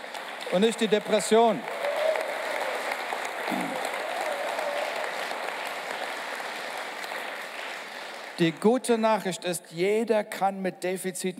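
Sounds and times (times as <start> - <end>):
applause: 0.0 - 9.0
speech: 0.5 - 1.8, 8.4 - 11.3.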